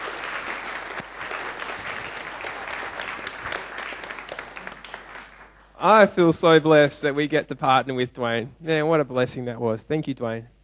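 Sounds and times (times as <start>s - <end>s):
church audience applause: 0.0s - 5.6s
speech: 5.8s - 10.6s.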